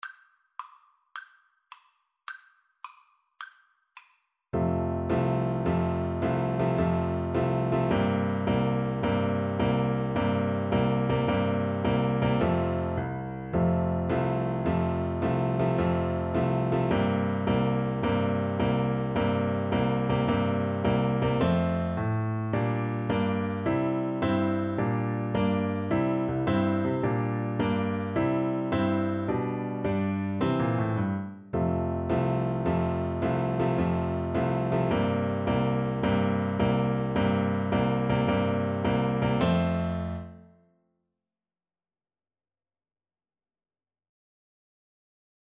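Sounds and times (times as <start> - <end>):
piano duet: 4.6 - 40.6.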